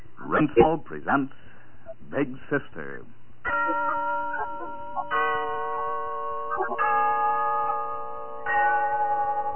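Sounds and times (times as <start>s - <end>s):
speech: 0.4s - 1.4s, 2.1s - 3.2s
Glen Falls Town Hall clock bell chiming: 3.5s - 9.5s.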